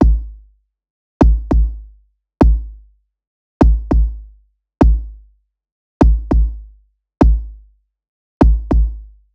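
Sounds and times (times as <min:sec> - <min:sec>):
kick drum: 0:00.0 - 0:00.5, 0:01.2 - 0:03.0, 0:03.6 - 0:05.3, 0:06.0 - 0:07.7, 0:08.4 - 0:09.2.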